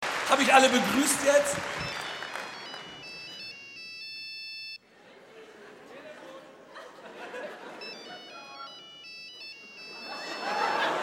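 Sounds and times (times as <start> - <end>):
speech: 0.3 - 2.0
mobile phone ringing in the audience at a live show: 1.8 - 4.8, 7.6 - 11.0
laughter: 4.9 - 11.0.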